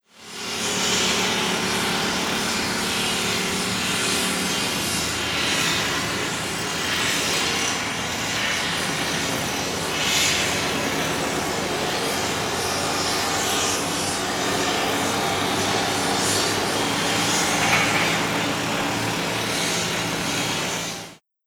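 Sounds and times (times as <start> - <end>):
construction noise: 0.1 - 21.2.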